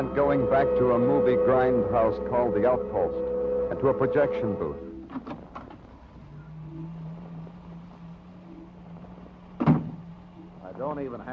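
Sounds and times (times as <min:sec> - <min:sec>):
speech: 0:00.0 - 0:05.4, 0:11.0 - 0:11.3
low steady hum: 0:00.0 - 0:11.3
door opening: 0:09.6 - 0:10.1.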